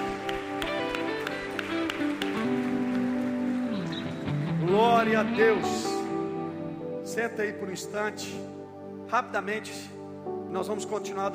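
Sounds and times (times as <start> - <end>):
audience applause: 0.0 - 5.8
speech: 5.0 - 5.9, 7.2 - 11.3.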